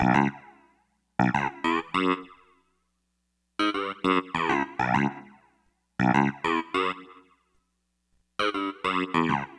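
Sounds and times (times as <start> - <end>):
bass: 0.0 - 0.6, 1.2 - 2.3, 3.6 - 5.3, 6.0 - 7.0, 8.4 - 9.5.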